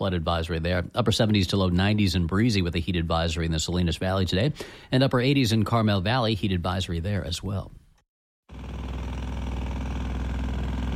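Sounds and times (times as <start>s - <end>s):
speech: 0.0s - 7.8s
construction machinery engine drone at a building site during paving: 8.5s - 10.9s.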